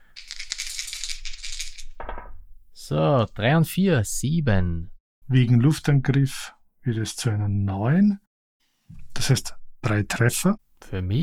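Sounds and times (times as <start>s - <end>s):
dice being rolled and rattling: 0.2s - 2.0s
speech: 2.9s - 8.2s, 8.9s - 11.2s.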